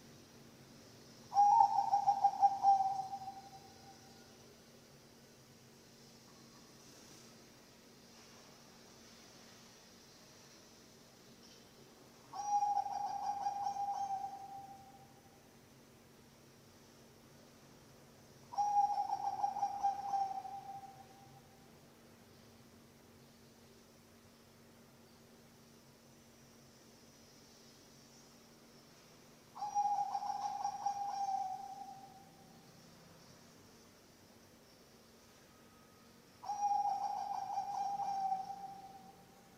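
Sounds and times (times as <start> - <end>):
zebra dove cooing: 1.3 - 3.7, 12.3 - 14.9, 18.5 - 21.1, 29.6 - 32.2, 36.4 - 39.2.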